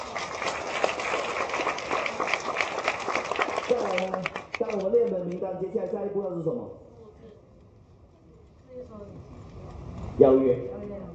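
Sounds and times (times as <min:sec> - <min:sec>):
audience applause: 0:00.0 - 0:05.4
speech: 0:04.8 - 0:06.8, 0:10.2 - 0:10.7.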